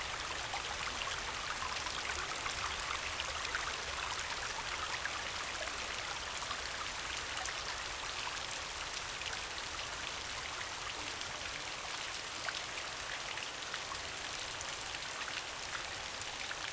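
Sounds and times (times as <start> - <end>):
mountain stream flowing: 0.0 - 16.7
relaxing rain: 0.0 - 16.7.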